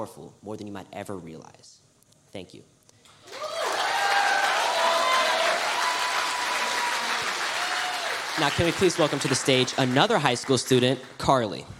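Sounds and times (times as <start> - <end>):
speech: 0.0 - 3.4, 8.4 - 11.7
church youth event audience clapping: 3.2 - 11.5.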